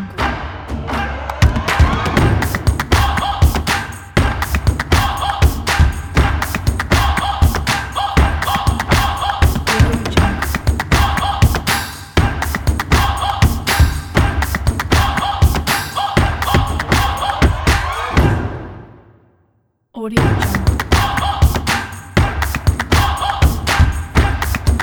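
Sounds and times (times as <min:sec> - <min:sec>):
tribal sport percussion: 0:00.0 - 0:19.0, 0:20.2 - 0:24.8.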